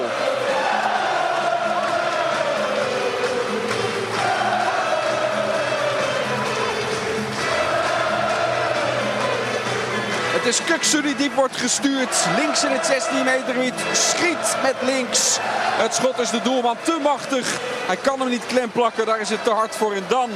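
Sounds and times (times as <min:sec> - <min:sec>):
stadium crowd singing in de Kuip: 0:00.0 - 0:20.3
speech: 0:10.5 - 0:20.3.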